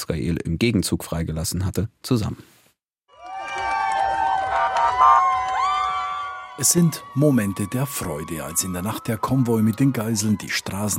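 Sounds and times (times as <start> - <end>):
speech: 0.1 - 2.6, 6.6 - 10.9
people cheering at the roadside: 3.1 - 10.9.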